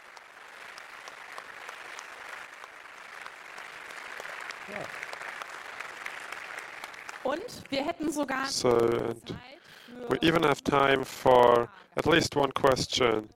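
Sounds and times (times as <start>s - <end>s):
audience applause: 0.0s - 9.0s
speech: 4.7s - 5.1s, 7.2s - 13.3s.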